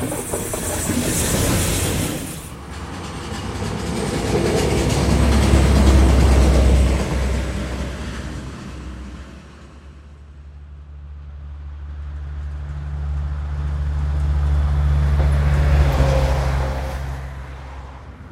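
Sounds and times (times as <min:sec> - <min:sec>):
trains passing by: 0:00.0 - 0:18.2
cars passing by: 0:02.6 - 0:18.2.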